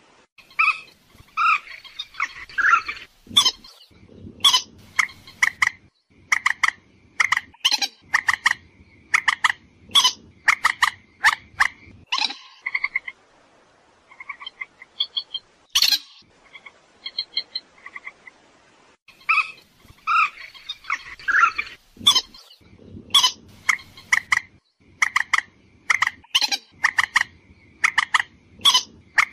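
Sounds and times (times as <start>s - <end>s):
purple swamphen screeching and clucking: 0.6s - 13.2s, 19.1s - 29.3s.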